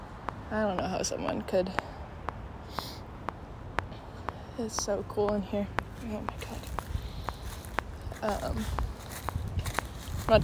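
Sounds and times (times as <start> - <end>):
speech: 0.5 - 2.0, 4.6 - 6.8, 8.2 - 8.8, 10.3 - 10.4
footsteps crunching on forest floor: 2.8 - 10.4.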